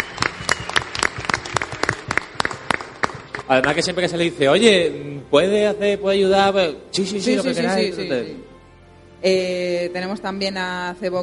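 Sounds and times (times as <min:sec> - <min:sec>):
audience applause: 0:00.0 - 0:03.9
speech: 0:03.5 - 0:08.5, 0:09.2 - 0:11.2.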